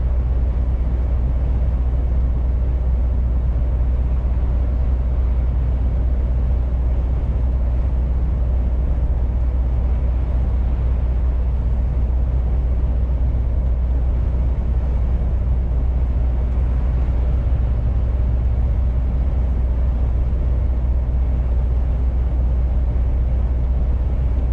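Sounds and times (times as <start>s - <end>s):
truck engine droning: 0.0s - 24.5s.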